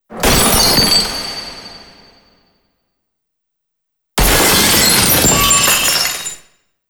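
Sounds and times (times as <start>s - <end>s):
glass breaking: 0.1s - 2.2s, 4.2s - 6.4s.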